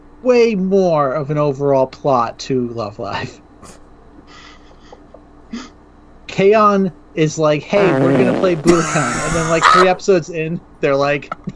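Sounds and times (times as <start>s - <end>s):
speech: 0.2s - 3.8s, 6.4s - 11.5s
fart: 7.8s - 10.0s.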